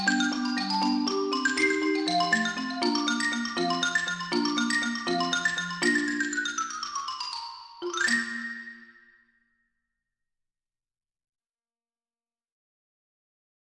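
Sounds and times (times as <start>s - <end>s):
waltz music: 0.0s - 8.9s.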